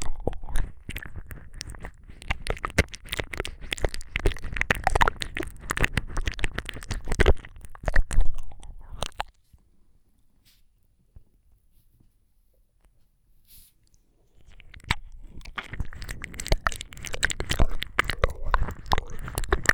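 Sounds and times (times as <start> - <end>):
ear licking with extra saliva ASMR: 0.0 - 9.4, 13.8 - 19.7.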